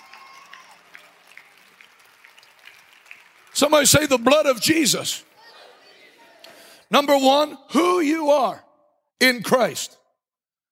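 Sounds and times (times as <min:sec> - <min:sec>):
audience clapping hands: 0:00.0 - 0:06.6
speech: 0:03.6 - 0:05.3, 0:06.9 - 0:08.6, 0:09.2 - 0:10.0.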